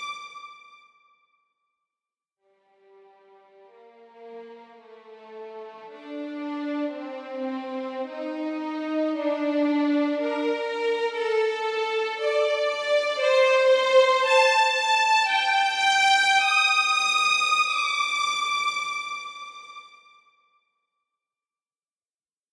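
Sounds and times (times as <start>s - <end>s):
first violins playing legato with reverb: 6.1s - 19.2s.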